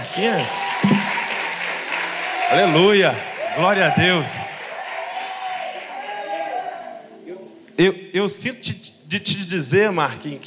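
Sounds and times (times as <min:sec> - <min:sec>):
audience applause: 0:00.0 - 0:06.7
speech: 0:00.2 - 0:01.0, 0:02.5 - 0:04.6, 0:07.8 - 0:10.4.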